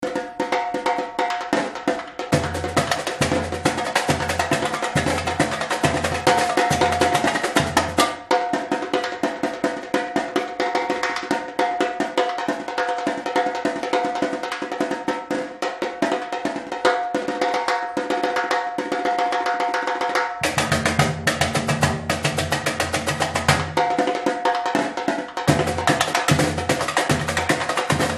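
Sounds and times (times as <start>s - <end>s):
repinique drum: 0.0s - 28.1s.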